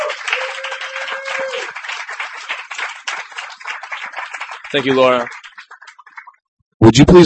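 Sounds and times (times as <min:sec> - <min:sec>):
audience applauding a performer at a reading: 0:00.0 - 0:06.4
speech: 0:04.7 - 0:05.4, 0:06.8 - 0:07.2.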